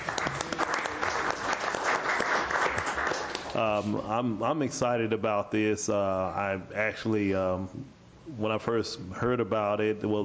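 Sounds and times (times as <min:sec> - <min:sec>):
round of applause from a group: 0:00.0 - 0:03.9
speech: 0:03.6 - 0:10.2.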